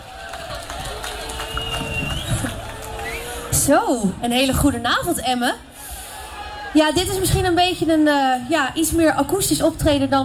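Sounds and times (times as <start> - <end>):
live audience applause: 0.0 - 3.7
audience cheering: 0.0 - 4.0, 5.8 - 7.4
thin whistle above the crowd noise: 1.4 - 3.4
speech: 3.7 - 5.7, 6.8 - 10.2.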